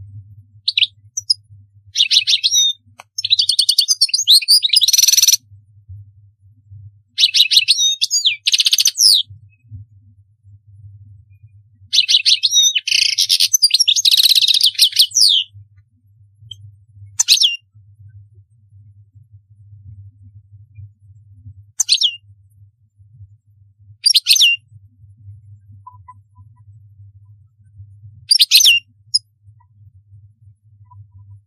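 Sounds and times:
faint low hum: 0:00.0 - 0:31.4
European goldfinch song: 0:00.7 - 0:05.4, 0:07.2 - 0:09.3, 0:11.9 - 0:15.5, 0:17.2 - 0:17.6, 0:21.8 - 0:22.2, 0:28.3 - 0:29.3.

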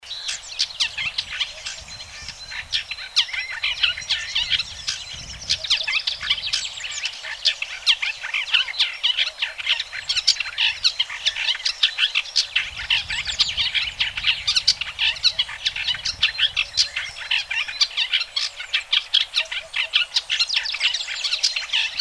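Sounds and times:
bird song of rapid sharp high chirps and twitters: 0:00.0 - 0:21.9.

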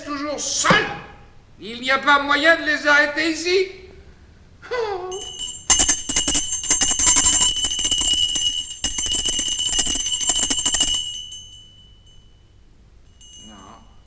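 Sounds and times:
speech: 0:00.1 - 0:01.0, 0:01.6 - 0:03.8, 0:04.6 - 0:05.3
small hand bell ringing: 0:05.1 - 0:14.0.

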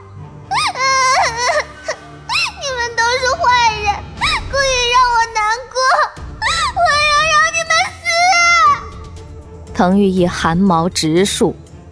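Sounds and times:
young girl's high shrill wailing cry at night: 0:00.5 - 0:09.0
speech: 0:09.8 - 0:11.6.

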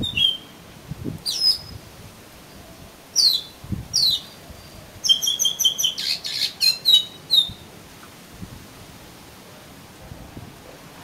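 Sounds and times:
Oriental magpie-robin singing whistles and buzzy notes: 0:00.0 - 0:00.6, 0:01.2 - 0:01.8, 0:03.2 - 0:04.4, 0:05.0 - 0:07.6.

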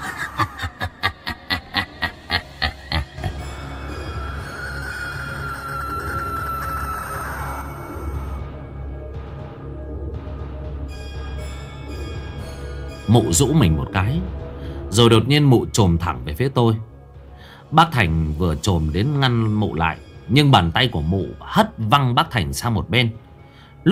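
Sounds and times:
eerie shrieking laugh: 0:00.0 - 0:08.4
speech: 0:13.1 - 0:16.9, 0:17.7 - 0:23.2.

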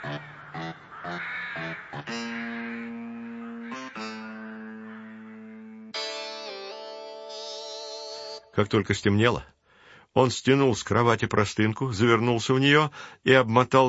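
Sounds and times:
crows cawing: 0:00.0 - 0:06.0
speech: 0:08.6 - 0:09.5, 0:10.2 - 0:13.8.

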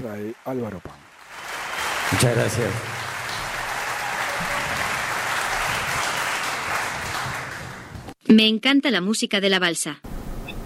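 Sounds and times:
speech: 0:00.0 - 0:01.0, 0:02.1 - 0:03.0, 0:08.3 - 0:10.1
audience applause: 0:00.0 - 0:08.1.

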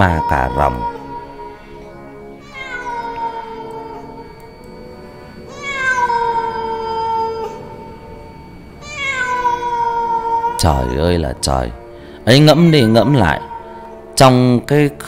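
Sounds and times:
speech: 0:00.0 - 0:01.0, 0:10.6 - 0:13.5, 0:14.2 - 0:15.0
cat meowing outside at night: 0:00.0 - 0:04.3, 0:05.5 - 0:07.7, 0:08.8 - 0:11.1, 0:12.3 - 0:13.9.

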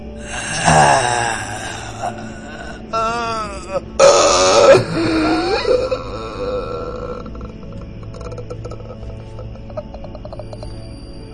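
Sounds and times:
voice performing death-rattle groans of someone dying in a horror story: 0:00.3 - 0:10.7.

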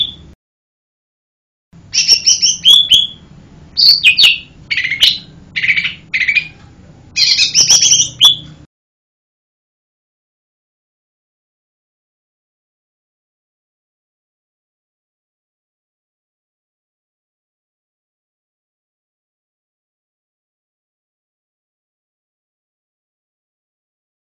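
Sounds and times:
bird singing lively high chirped phrases: 0:00.0 - 0:00.3, 0:01.9 - 0:06.6, 0:07.2 - 0:08.7.

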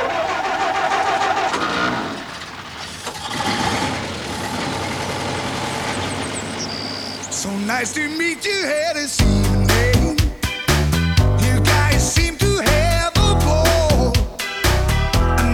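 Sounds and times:
car engine starting and pulling away: 0:00.0 - 0:15.5
speech: 0:07.7 - 0:09.5.

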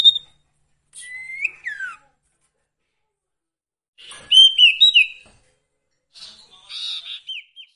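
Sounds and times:
song: 0:00.0 - 0:00.4, 0:01.0 - 0:02.0, 0:04.0 - 0:05.2, 0:06.8 - 0:07.7.

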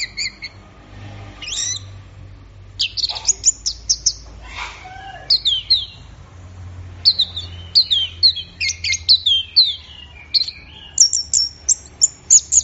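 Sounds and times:
Orange-headed thrush singing: 0:00.0 - 0:00.6, 0:01.4 - 0:01.9, 0:02.8 - 0:04.3, 0:05.2 - 0:06.0, 0:07.0 - 0:12.6
low background hum: 0:00.0 - 0:12.6.

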